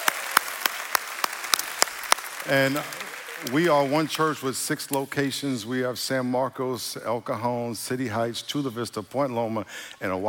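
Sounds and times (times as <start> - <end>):
church congregation applause welcoming a visitor: 0.0 - 4.8
speech: 2.4 - 10.2.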